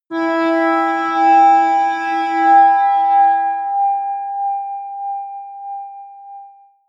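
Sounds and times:
high atmospheric feedback synthesizer drones: 0.1s - 3.8s.

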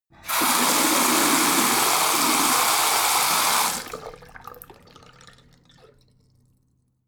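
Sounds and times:
bathroom tap water flowing very hard: 0.2s - 5.6s.

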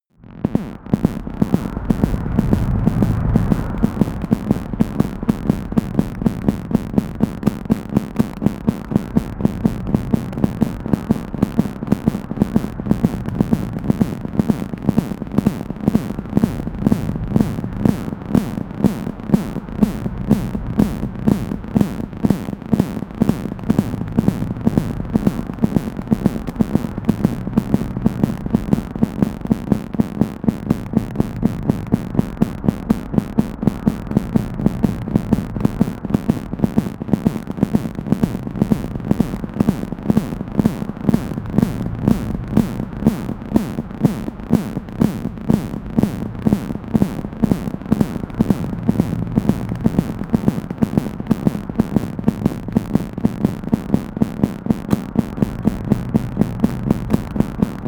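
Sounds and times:
noisy digital heartbeat: 0.0s - 57.8s.

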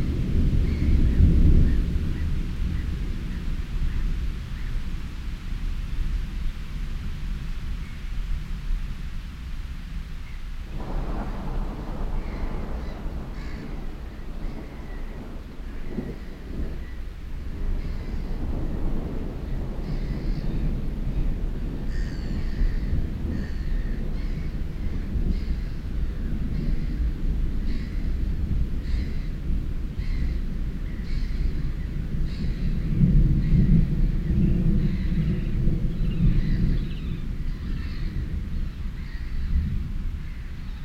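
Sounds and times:
thunderstorm over a lake: 0.0s - 40.8s.

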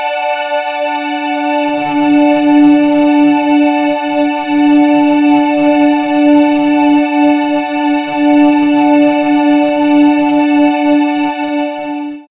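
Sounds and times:
morning air synth pads: 0.1s - 12.2s.

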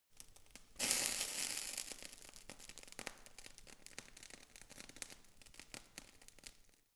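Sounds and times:
fire torch sizzling: 0.8s - 2.0s.

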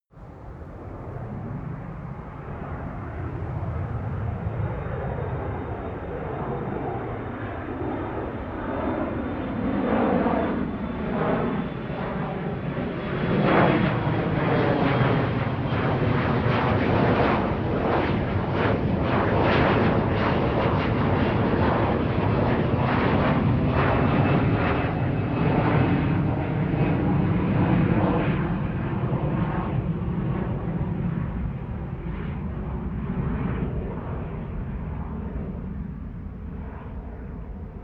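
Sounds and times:
plane flyby and landing: 0.2s - 37.8s.

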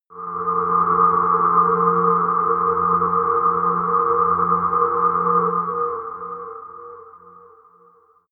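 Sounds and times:
sci-fi drones: 0.1s - 7.8s.

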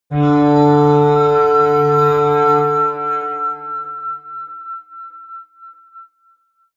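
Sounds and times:
atmospheric feedback synthesizer drones: 0.1s - 4.4s.

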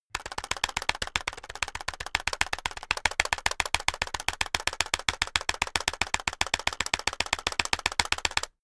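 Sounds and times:
external keyboard backspace key tapped fast and aggressively: 0.0s - 8.6s.

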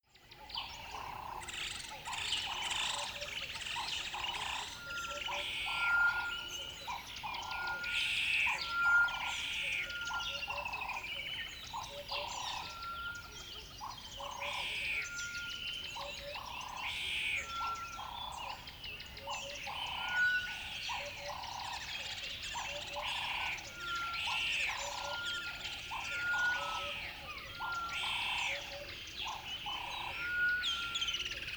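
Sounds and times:
birds singing at dawn by a river bed: 0.0s - 31.5s.

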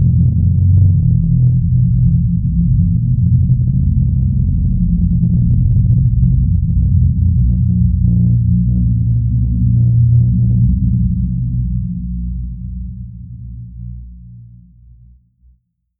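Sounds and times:
drone rumble: 0.0s - 14.2s.

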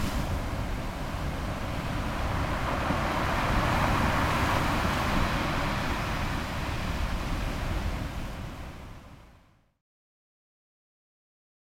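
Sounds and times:
waves breaking: 0.0s - 9.1s.

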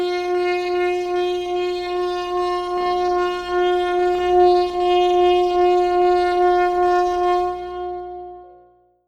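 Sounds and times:
smooth long synth bass: 0.1s - 8.6s.

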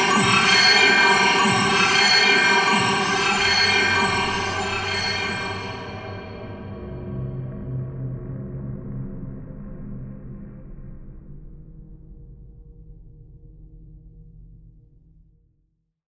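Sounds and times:
shrill drone: 0.0s - 7.3s.

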